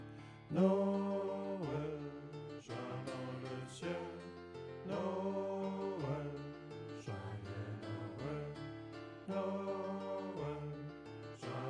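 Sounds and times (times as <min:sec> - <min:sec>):
bass voices singing a Christmas carol: 0:00.5 - 0:08.7, 0:09.2 - 0:11.6.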